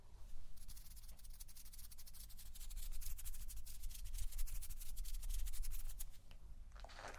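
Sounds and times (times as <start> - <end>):
microphone brushing and scratchy rubbing: 0.6 - 6.2.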